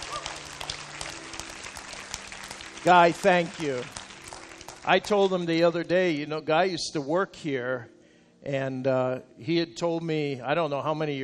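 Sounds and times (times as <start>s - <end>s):
crowd clapping for a man turning 80: 0.0s - 5.6s
speech: 2.8s - 4.0s, 4.8s - 11.2s.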